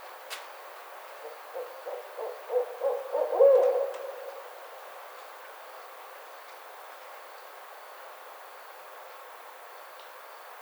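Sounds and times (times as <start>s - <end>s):
barred owl hooting: 1.2s - 4.6s.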